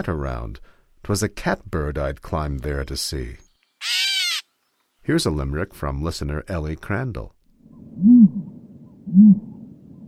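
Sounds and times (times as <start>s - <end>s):
speech: 0.0s - 4.0s, 5.0s - 8.4s, 9.1s - 9.5s
ostrich booming hoots: 7.8s - 9.6s.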